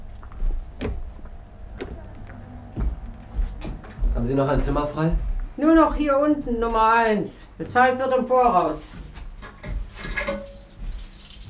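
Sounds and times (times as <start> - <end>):
low steady hum: 0.0 - 11.4
speech: 4.2 - 9.0
bunch of hotel room keys jangling as handed over: 9.4 - 11.4.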